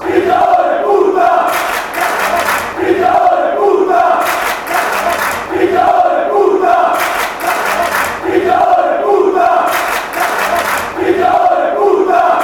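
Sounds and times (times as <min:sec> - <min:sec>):
chanting: 0:00.0 - 0:12.4.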